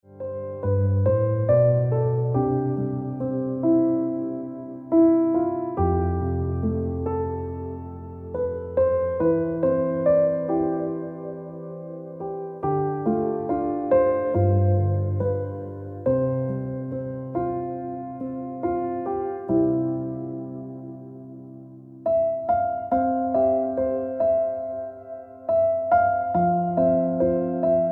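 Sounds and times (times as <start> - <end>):
piano music: 0.0 - 27.8.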